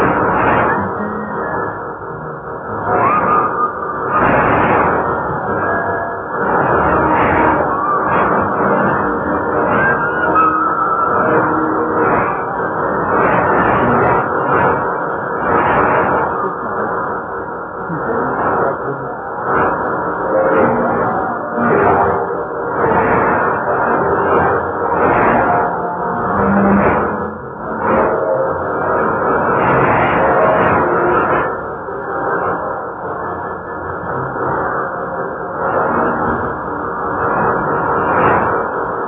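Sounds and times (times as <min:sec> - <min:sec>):
5010 kHz shortwave radio broadcast in Malagasy: 0:00.0 - 0:39.0.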